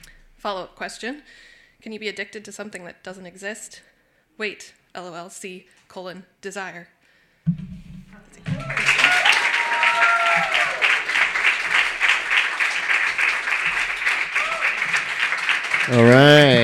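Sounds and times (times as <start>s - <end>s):
speech: 0.4s - 7.6s, 15.9s - 16.4s
audience applause: 8.5s - 16.6s
murmur of voice: 15.9s - 16.6s.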